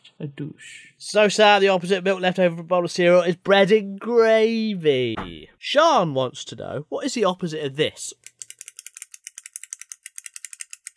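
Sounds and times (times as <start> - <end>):
speech: 0.2 - 8.2
pen being clicked: 8.2 - 10.9.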